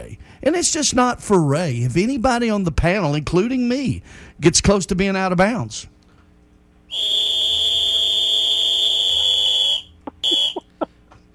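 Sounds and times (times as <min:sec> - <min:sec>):
speech: 0:00.4 - 0:05.9
feeble whistle being blown: 0:06.9 - 0:10.7.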